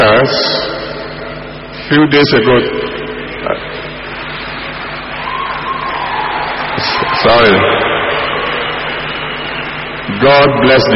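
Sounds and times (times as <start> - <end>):
speech: 1.9 - 3.7, 7.2 - 7.8, 10.2 - 10.9
crowd clapping: 3.8 - 10.9.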